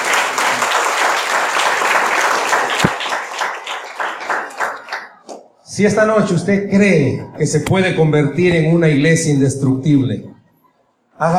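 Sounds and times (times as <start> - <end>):
audience applause: 0.0 - 5.4
speech: 5.8 - 10.3, 11.2 - 11.3.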